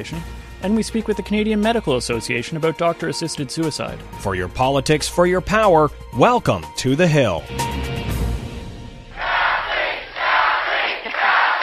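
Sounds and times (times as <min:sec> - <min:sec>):
speech: 0:00.0 - 0:07.9
Ontario Liberals chanting Kathleen Wynne's name after an election victory: 0:09.2 - 0:11.6.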